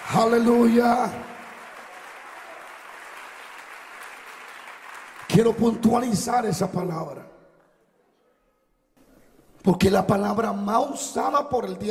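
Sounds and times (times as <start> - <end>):
audience applause: 0.0 - 6.1
speech: 0.1 - 1.4, 5.4 - 7.3, 9.6 - 11.8.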